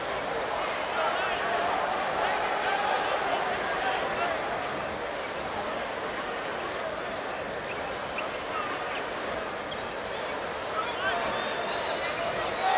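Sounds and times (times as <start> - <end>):
basketball crowd: 0.0 - 12.7.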